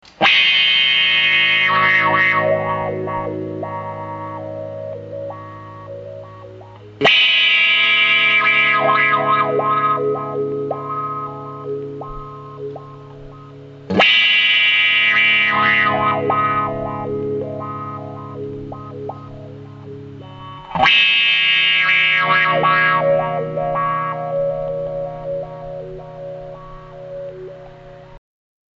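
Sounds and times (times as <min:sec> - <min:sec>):
auto-wah filtered sound: 0:00.0 - 0:28.2.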